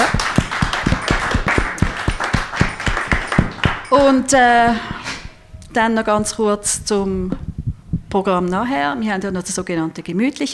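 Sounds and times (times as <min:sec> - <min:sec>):
audience applause: 0:00.0 - 0:03.9
speech: 0:03.9 - 0:04.9, 0:05.8 - 0:07.4, 0:08.1 - 0:10.5.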